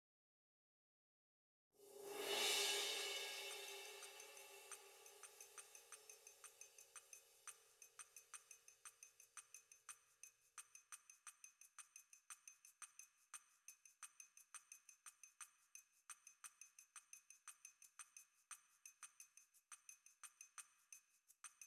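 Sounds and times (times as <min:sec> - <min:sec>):
percussion: 0:01.8 - 0:21.6.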